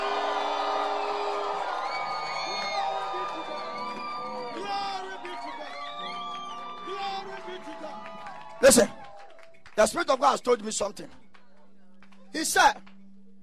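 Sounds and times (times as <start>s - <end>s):
high whoops: 0.0s - 9.5s
crowd shouting and cheering: 0.0s - 11.2s
speech: 8.6s - 9.0s, 9.8s - 11.2s, 12.4s - 12.9s.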